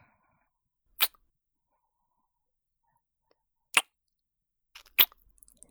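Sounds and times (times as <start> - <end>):
ASMR kissing sounds: 1.0 - 1.2, 4.8 - 5.2.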